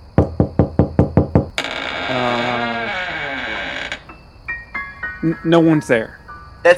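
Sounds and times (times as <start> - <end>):
knocking on a door: 0.1 - 1.6
long creaking groan: 1.5 - 4.2
speech: 5.2 - 6.7.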